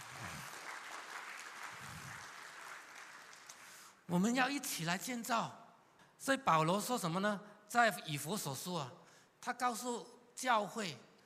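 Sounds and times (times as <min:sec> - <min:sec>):
audience applause: 0:00.0 - 0:03.9
speech: 0:04.1 - 0:05.6, 0:06.2 - 0:11.1.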